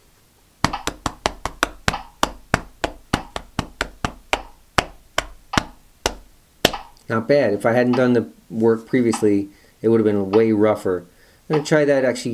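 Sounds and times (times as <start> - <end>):
hands clapping a rhythm: 0.6 - 7.0
speech: 7.1 - 12.3.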